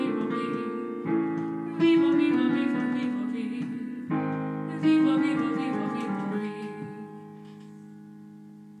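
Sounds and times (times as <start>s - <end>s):
person singing: 0.0s - 1.0s, 1.7s - 7.6s.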